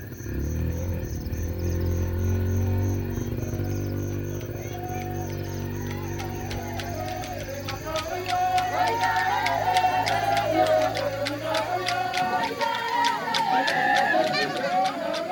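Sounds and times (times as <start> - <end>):
low droning tone: 0.0 - 8.2
villagers singing and calling out at a welcome festival: 0.0 - 15.2
laughter: 1.6 - 15.2.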